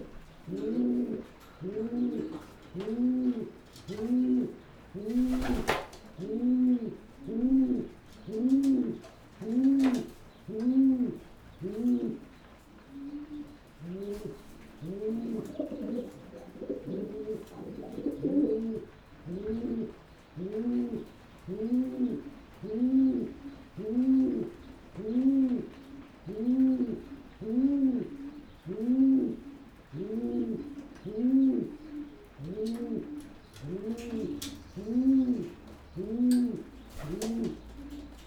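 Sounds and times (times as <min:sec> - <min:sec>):
pigeon cooing: 0:00.0 - 0:12.3, 0:12.9 - 0:38.2
faint hum: 0:00.0 - 0:38.2.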